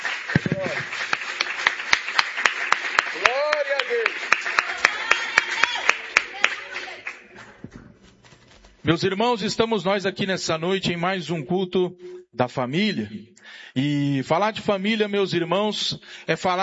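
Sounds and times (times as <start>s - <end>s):
audience clapping hands: 0.0s - 7.8s
speech: 8.9s - 16.6s.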